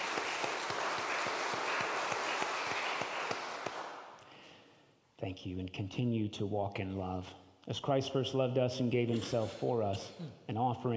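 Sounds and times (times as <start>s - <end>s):
audience applause: 0.0s - 4.1s
speech: 5.2s - 10.9s.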